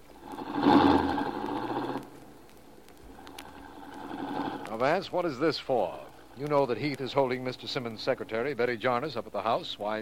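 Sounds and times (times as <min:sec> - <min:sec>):
car engine driving up: 0:00.2 - 0:02.1
speech: 0:04.8 - 0:10.0.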